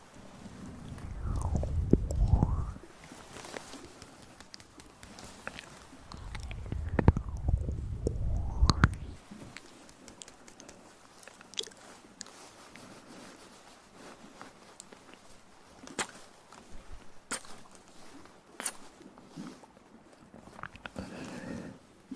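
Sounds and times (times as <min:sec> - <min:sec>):
soft low murmur: 0:00.0 - 0:22.1
wet mouth clicks, smacks and crunchy bits: 0:00.8 - 0:02.8, 0:03.7 - 0:12.3, 0:18.6 - 0:18.9, 0:20.6 - 0:21.0
heavy low breaths: 0:21.0 - 0:21.9.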